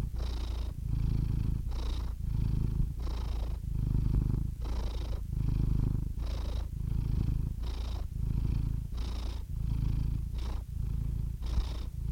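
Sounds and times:
domestic cat purring: 0:00.0 - 0:12.1.

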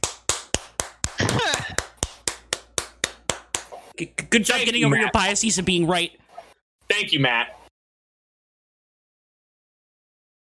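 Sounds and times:
hand clapping: 0:00.0 - 0:03.9
speech: 0:04.0 - 0:06.2, 0:07.0 - 0:07.6.

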